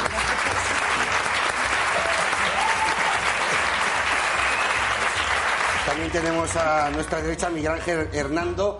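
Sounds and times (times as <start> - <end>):
audience applause: 0.0 - 7.2
speech: 6.1 - 8.7.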